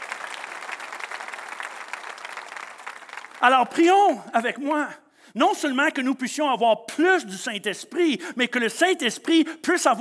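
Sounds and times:
audience applause: 0:00.0 - 0:03.8
speech: 0:03.4 - 0:09.9.

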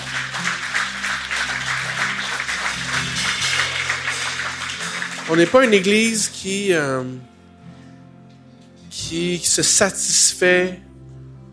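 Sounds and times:
audience applause: 0:00.0 - 0:06.4
speech: 0:05.3 - 0:07.3, 0:09.1 - 0:10.9.

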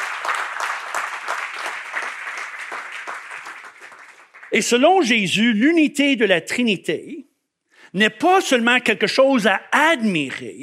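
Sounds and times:
audience applause: 0:00.0 - 0:04.8
speech: 0:04.5 - 0:07.3, 0:07.9 - 0:10.6.

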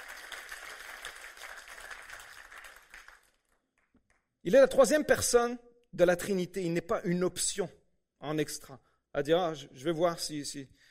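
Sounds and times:
audience applause: 0:00.0 - 0:03.6
speech: 0:04.4 - 0:10.8.

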